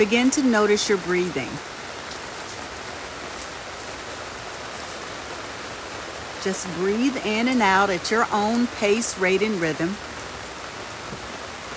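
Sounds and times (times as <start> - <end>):
speech: 0.0 - 1.8, 6.4 - 10.1
rain falling: 0.0 - 11.7.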